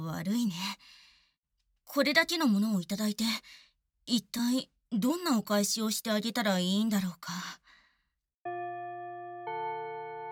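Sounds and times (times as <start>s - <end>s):
speech: 0.1s - 1.0s, 1.9s - 7.6s
school bell chime ringing: 8.5s - 10.3s.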